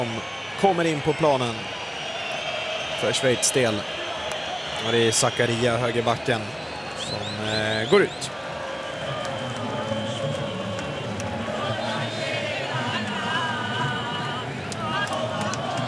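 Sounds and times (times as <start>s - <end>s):
speech: 0.0s - 1.8s, 3.0s - 4.0s, 4.8s - 8.4s
Argentinian football supporters cheering: 0.0s - 15.8s
Argentinian football supporters singing: 7.0s - 15.8s.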